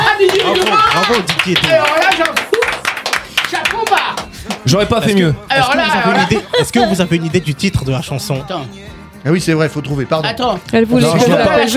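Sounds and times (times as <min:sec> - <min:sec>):
applause: 0:00.0 - 0:04.8
speech: 0:00.3 - 0:02.6, 0:04.7 - 0:11.7
laughter: 0:05.6 - 0:07.4.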